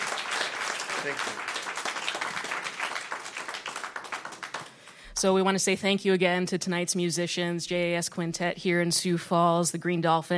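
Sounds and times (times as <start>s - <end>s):
audience applause: 0.0s - 5.0s
speech: 1.0s - 1.6s, 5.2s - 10.3s.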